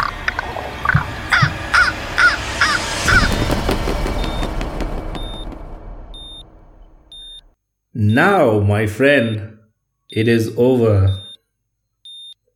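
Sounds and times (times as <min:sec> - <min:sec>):
low rumble: 0:00.0 - 0:07.5
raven cawing: 0:00.8 - 0:03.4
speech: 0:08.2 - 0:09.5, 0:10.1 - 0:11.2.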